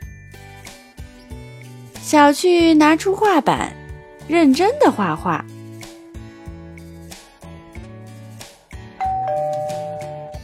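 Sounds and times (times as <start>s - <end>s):
speech: 2.0s - 5.5s
doorbell ringing: 9.0s - 10.4s.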